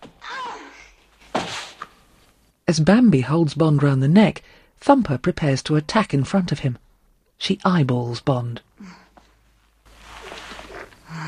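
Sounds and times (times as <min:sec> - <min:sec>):
rustling scuffle in a fight: 0:01.1 - 0:01.9, 0:09.9 - 0:11.0
speech: 0:02.7 - 0:06.8, 0:07.4 - 0:09.0.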